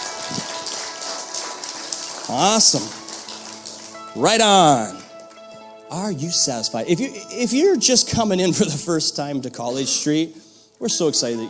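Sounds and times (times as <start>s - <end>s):
audience applause: 0.0s - 6.4s
speech: 2.3s - 3.0s, 4.2s - 5.0s, 5.9s - 11.4s.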